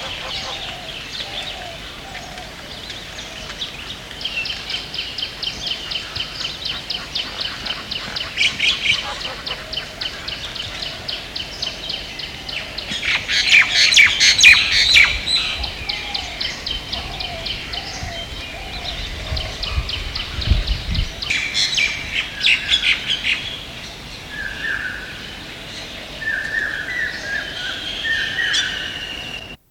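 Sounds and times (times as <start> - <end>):
birds on the Terai in Nepal: 0.0 - 29.6.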